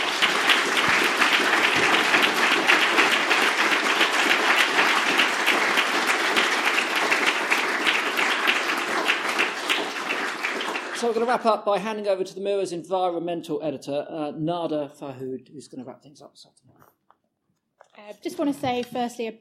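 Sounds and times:
audience applause: 0:00.0 - 0:11.5
speech: 0:11.1 - 0:17.0, 0:18.0 - 0:19.3.

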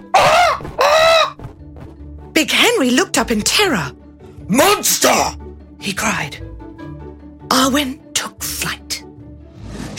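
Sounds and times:
owl screeching: 0:00.1 - 0:01.4
speech: 0:02.4 - 0:06.5, 0:07.5 - 0:08.8.

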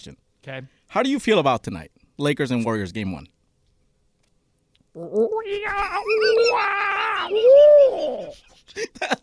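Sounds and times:
speech: 0:00.0 - 0:03.4, 0:05.0 - 0:09.2
person imitating a monkey: 0:04.9 - 0:08.4.

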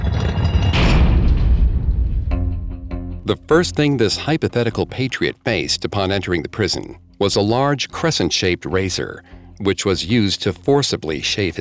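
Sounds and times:
heavy prison door slamming shut: 0:00.0 - 0:03.2
sharp metallic clank: 0:00.0 - 0:03.2
speech: 0:03.3 - 0:11.5.

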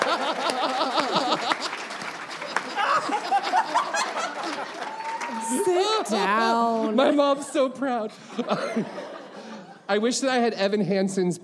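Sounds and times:
audience applause: 0:00.0 - 0:07.3
laughter: 0:00.0 - 0:09.9
speech: 0:06.1 - 0:09.2, 0:09.9 - 0:11.4.

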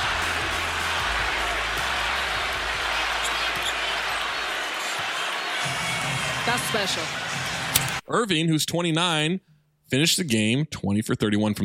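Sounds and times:
Orlando arena crowd cheering: 0:00.0 - 0:08.0
speech: 0:06.5 - 0:07.2, 0:08.1 - 0:11.6.

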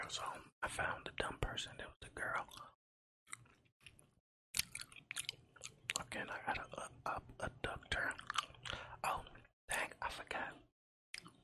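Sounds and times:
speech: 0:00.1 - 0:03.4, 0:06.0 - 0:11.4
gum chewed for an ASMR video: 0:03.3 - 0:09.5, 0:11.2 - 0:11.4.

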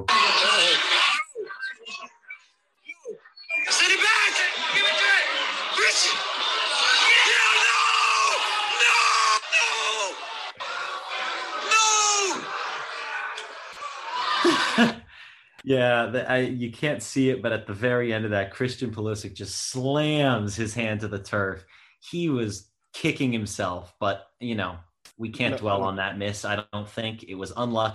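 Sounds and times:
bar crowd shouting and groaning at a near-miss goal: 0:00.0 - 0:01.2, 0:03.6 - 0:15.0
laughter: 0:00.0 - 0:01.2, 0:03.7 - 0:17.6, 0:25.3 - 0:25.9
speech: 0:15.7 - 0:27.9.

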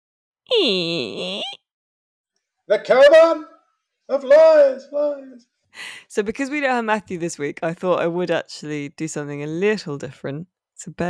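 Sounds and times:
speech: 0:00.5 - 0:01.6, 0:02.7 - 0:03.5, 0:04.1 - 0:11.0
voice imitating a creaking door: 0:00.5 - 0:01.6.

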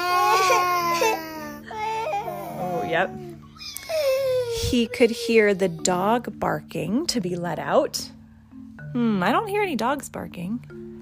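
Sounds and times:
person imitating baby crying: 0:00.0 - 0:06.0
speech: 0:02.9 - 0:03.8, 0:04.7 - 0:08.2, 0:08.9 - 0:10.9.

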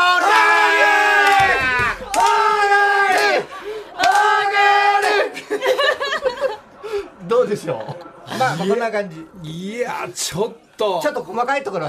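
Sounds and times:
voice imitating a racecourse crowd cheering and chanting: 0:00.0 - 0:05.4
laughter: 0:01.4 - 0:09.0
speech: 0:07.5 - 0:11.8.

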